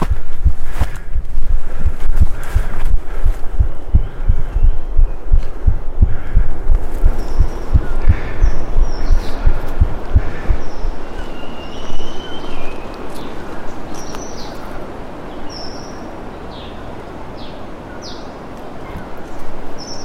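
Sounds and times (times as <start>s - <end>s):
heartbeat recorded up close: 0.0s - 11.1s.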